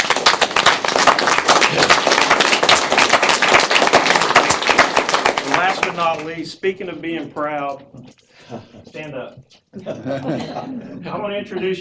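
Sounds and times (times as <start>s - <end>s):
audience round of applause: 0.0s - 6.4s
speech: 6.0s - 11.8s
laughter: 8.3s - 9.2s, 9.8s - 11.8s.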